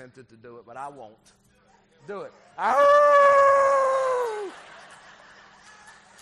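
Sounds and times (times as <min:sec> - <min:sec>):
speech: 0:00.0 - 0:04.8
laughter: 0:02.1 - 0:06.1
person imitating a wolf howl: 0:02.6 - 0:04.5.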